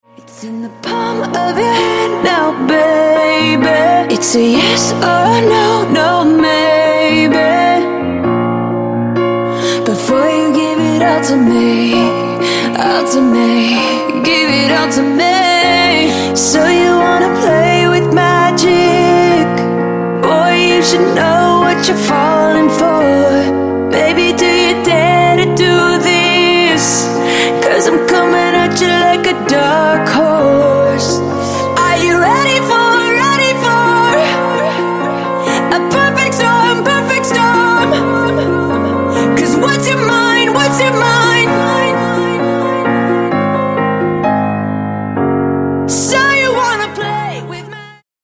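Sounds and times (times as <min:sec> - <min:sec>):
acoustic music: 0:00.2 - 0:48.0.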